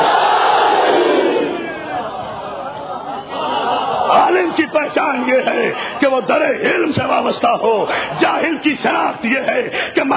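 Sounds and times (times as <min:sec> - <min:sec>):
audience shouting a slogan at a religious gathering: 0:00.0 - 0:02.2, 0:03.3 - 0:05.3
laughter: 0:01.6 - 0:07.9
speech: 0:04.6 - 0:10.1.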